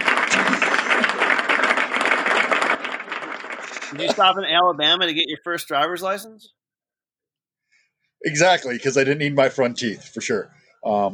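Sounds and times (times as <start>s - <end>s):
crowd clapping: 0.0s - 4.2s
speech: 4.0s - 6.6s, 8.2s - 11.1s.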